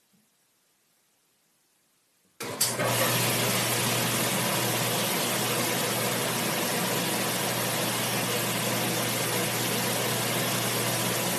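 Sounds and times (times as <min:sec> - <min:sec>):
washing machine motor hum: 0:02.4 - 0:11.3.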